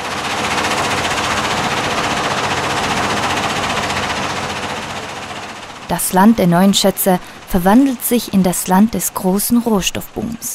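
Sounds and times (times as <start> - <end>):
large loud mining drilling machines: 0.0 - 6.3, 7.2 - 7.9
speech: 5.9 - 10.5.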